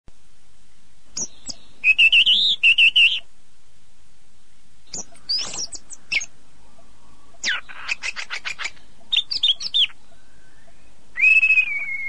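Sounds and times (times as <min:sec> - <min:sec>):
bird song of rapid bright twittering phrases with sweeping whistled notes: 0:01.1 - 0:03.3, 0:04.8 - 0:12.0.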